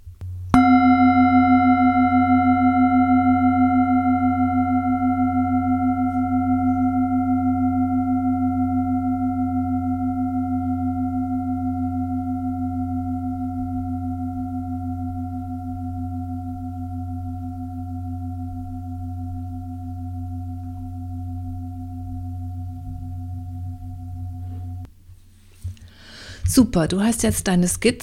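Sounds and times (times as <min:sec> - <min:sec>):
gong ringing as signal or alarm: 0:00.5 - 0:24.9
speech: 0:26.8 - 0:28.0.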